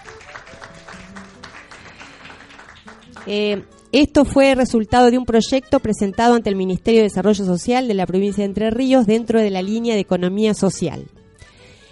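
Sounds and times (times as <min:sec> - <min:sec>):
audience applause: 0:00.0 - 0:03.3
speech: 0:03.2 - 0:11.2.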